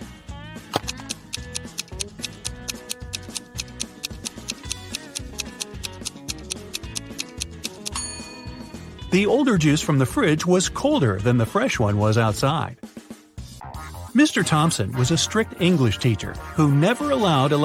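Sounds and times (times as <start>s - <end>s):
clock-style countdown ticking: 0.9s - 8.0s
looping tense musical bed with low bass notes: 0.9s - 9.2s, 13.4s - 14.2s, 16.2s - 16.8s
speech: 9.2s - 12.9s, 14.2s - 17.6s.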